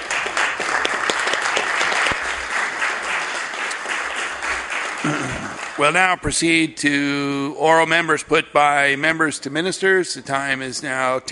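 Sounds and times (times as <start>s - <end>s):
applause in a legislative chamber: 0.0s - 6.4s
speech: 5.0s - 11.2s.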